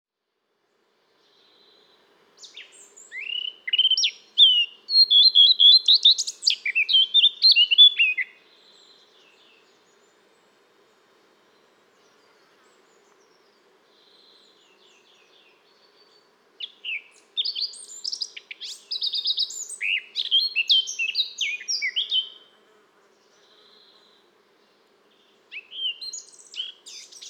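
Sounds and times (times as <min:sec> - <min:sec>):
Eurasian blackcap warbling song: 0:02.4 - 0:09.7, 0:12.1 - 0:22.4, 0:25.2 - 0:27.2.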